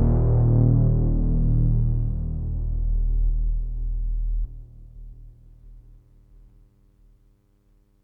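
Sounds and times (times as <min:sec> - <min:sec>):
Sixtrak synthesizer resonant filter in unison mode: 0:00.0 - 0:04.8.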